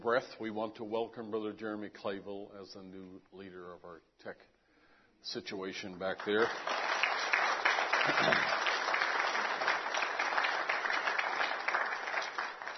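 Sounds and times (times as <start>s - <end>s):
speech: 0.0s - 4.6s, 5.2s - 6.8s, 8.0s - 8.6s
audience applauding: 6.2s - 12.7s.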